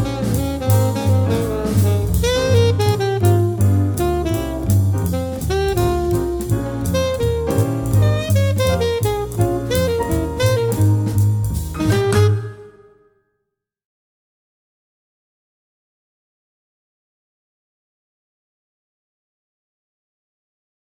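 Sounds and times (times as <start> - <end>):
piano quartet playing: 0.0 - 13.0.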